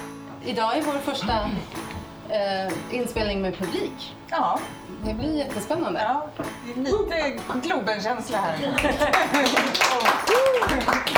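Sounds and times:
speech: 0.4s - 11.1s
applause: 8.8s - 11.1s.

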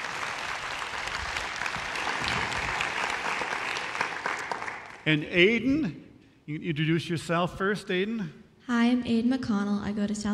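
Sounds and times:
crowd clapping: 0.0s - 5.3s
speech: 5.0s - 10.3s.

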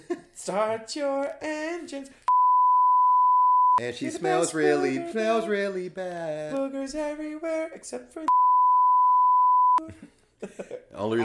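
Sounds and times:
speech: 0.4s - 2.2s, 3.8s - 8.4s, 9.9s - 11.2s
censorship bleep tone: 2.3s - 3.8s, 8.3s - 9.8s.

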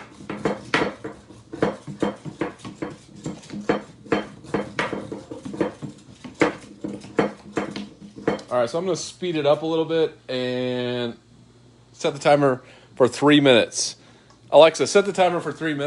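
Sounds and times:
Pogo Whisk beating in a bowl: 0.0s - 8.6s, 14.9s - 15.8s
speech: 8.6s - 11.2s, 12.0s - 15.8s.

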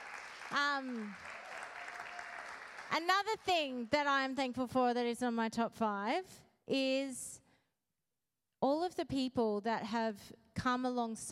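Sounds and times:
audience clapping for the youth: 0.0s - 3.6s
speech: 0.5s - 1.3s, 2.9s - 7.4s, 8.6s - 11.2s.

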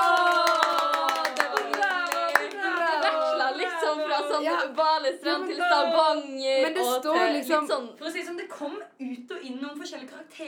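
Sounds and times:
scattered handclaps from a radio theatre audience: 0.0s - 3.4s
speech: 4.4s - 10.4s.

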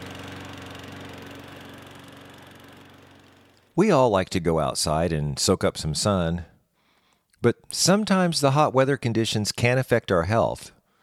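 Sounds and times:
lawn mower running while mowing the lawn on a hot afternoon: 0.0s - 3.9s
speech: 3.8s - 6.5s, 7.4s - 10.8s.

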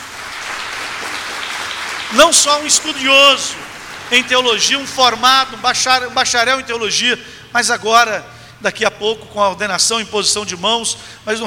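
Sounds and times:
audience applause: 0.0s - 5.0s
speech: 2.1s - 11.4s.

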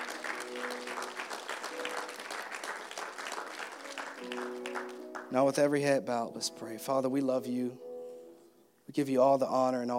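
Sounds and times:
audience applause: 0.0s - 5.3s
speech: 5.3s - 7.8s, 8.9s - 9.9s.

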